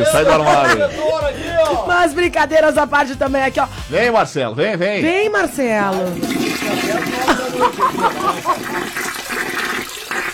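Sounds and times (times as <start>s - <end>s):
laughter: 0.0s - 1.6s, 6.5s - 9.1s
speech: 0.0s - 9.0s
running water while hands are washed: 5.5s - 10.3s.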